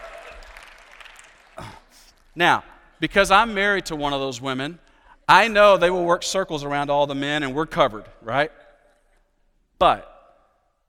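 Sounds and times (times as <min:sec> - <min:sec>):
audience clapping: 0:00.0 - 0:03.0
speech: 0:02.4 - 0:08.6, 0:09.8 - 0:10.1.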